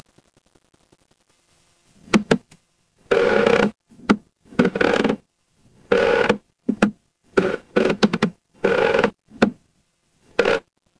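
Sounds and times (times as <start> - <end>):
horror creak: 2.0 - 2.4, 3.1 - 9.6, 10.3 - 10.6.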